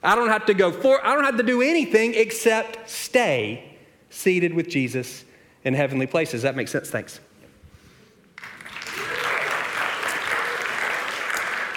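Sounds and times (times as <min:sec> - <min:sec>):
speech: 0:00.0 - 0:07.3
audience applause: 0:08.4 - 0:11.7.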